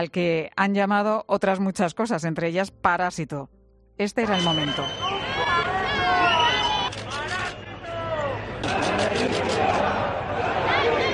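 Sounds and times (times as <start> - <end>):
speech: 0.0 - 5.1
crowd whistling at the president of the government: 4.3 - 10.0
crowd booing the president of the government: 4.6 - 11.1.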